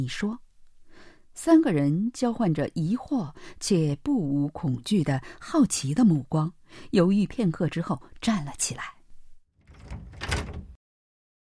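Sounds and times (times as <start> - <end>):
speech: 0.0 - 0.4, 1.4 - 9.0
door being gently pushed open: 9.6 - 10.8.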